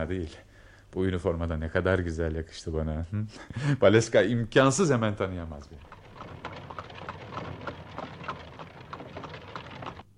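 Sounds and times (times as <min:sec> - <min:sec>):
speech: 0:00.0 - 0:06.4
hoofbeats of a horse-drawn carriage arriving, radio drama sound effect: 0:05.8 - 0:10.1.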